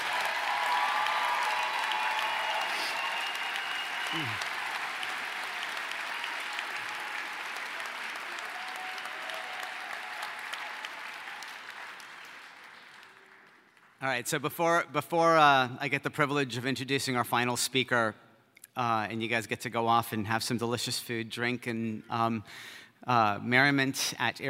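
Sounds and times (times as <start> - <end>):
large audience applause: 0.0 - 14.0
speech: 4.1 - 4.5, 14.0 - 18.2, 18.8 - 24.4.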